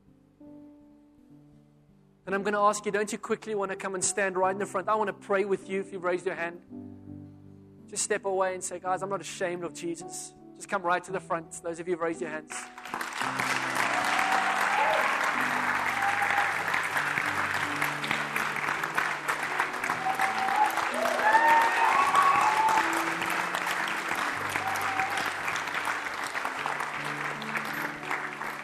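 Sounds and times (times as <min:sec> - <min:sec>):
speech: 0:02.3 - 0:06.8, 0:07.9 - 0:13.0
audience clapping: 0:12.6 - 0:28.6.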